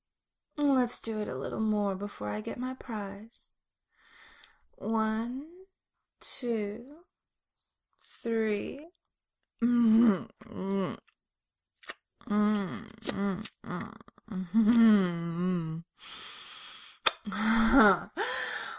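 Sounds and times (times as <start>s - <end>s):
speech: 0.6s - 3.6s, 4.8s - 5.6s, 6.2s - 7.1s, 8.2s - 9.0s, 9.6s - 11.0s, 12.2s - 16.4s, 17.3s - 18.5s
person gasping: 16.0s - 18.7s.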